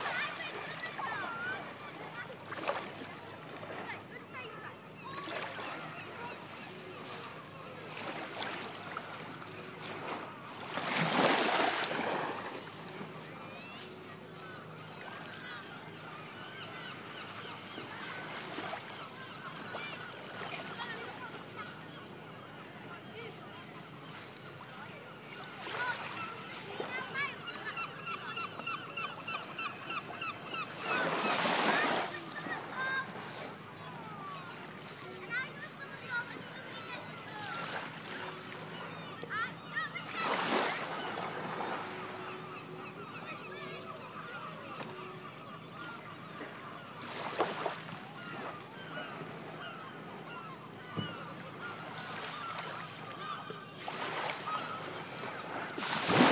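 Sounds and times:
children at St Ives harbour: 0.0 - 55.1
seagulls at St Ives harbour: 0.0 - 56.3
water lapping at St Ives harbour at sunset: 0.0 - 56.3.

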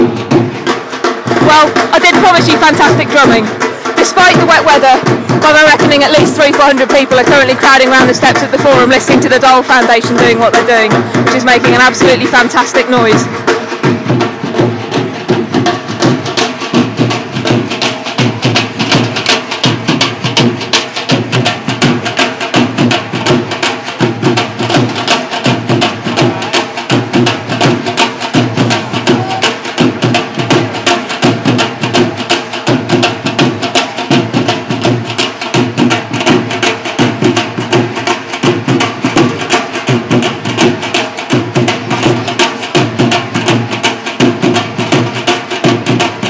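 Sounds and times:
dhol drumming: 0.0 - 46.2.

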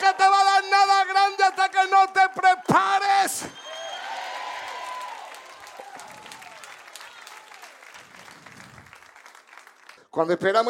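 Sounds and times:
audience clapping and cheering shouts: 0.0 - 10.3
speech: 10.2 - 10.6.

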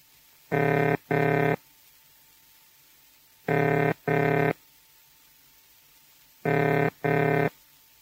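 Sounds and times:
telephone ringing tone with paired low burring: 0.5 - 1.6, 3.5 - 4.6, 6.5 - 7.5.

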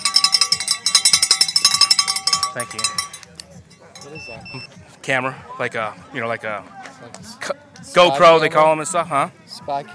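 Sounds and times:
bell ringing: 0.0 - 4.6
speech: 2.6 - 3.1, 4.0 - 9.9.

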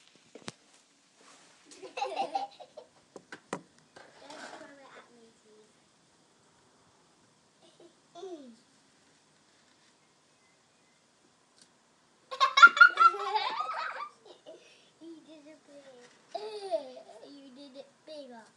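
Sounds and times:
children laughing in the sandpit: 1.7 - 2.9, 12.3 - 15.3, 16.3 - 17.3.

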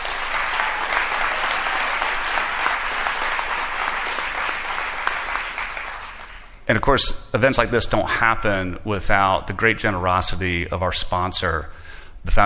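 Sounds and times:
audience applause: 0.0 - 6.6
speech: 6.7 - 12.4.

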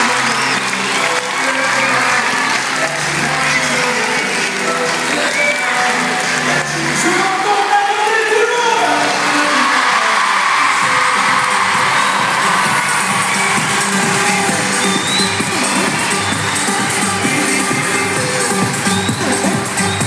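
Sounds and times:
school ambience: 0.0 - 20.0.

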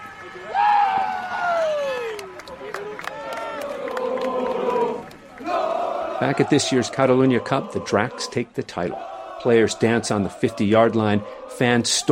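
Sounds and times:
crowd cheering at football game: 0.0 - 12.1
individual voices yelling: 0.0 - 12.1
scattered claps: 2.0 - 5.7
speech: 6.2 - 12.1.

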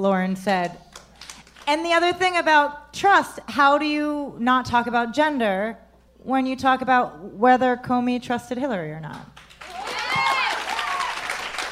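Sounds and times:
speech: 0.0 - 0.8, 1.7 - 9.4
women in a crowd clapping: 0.9 - 1.7, 9.4 - 11.7.

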